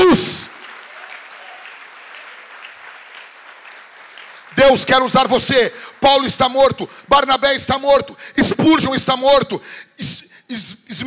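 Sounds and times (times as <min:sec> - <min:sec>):
audience applauding: 0:00.0 - 0:07.1
speech: 0:04.6 - 0:11.0.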